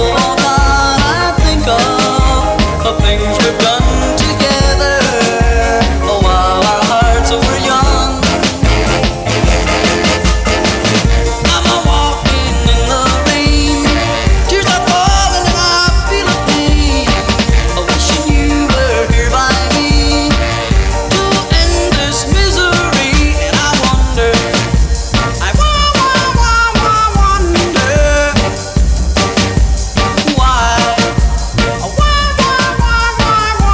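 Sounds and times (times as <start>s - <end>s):
Redrum drum machine beat: 0.0s - 33.7s.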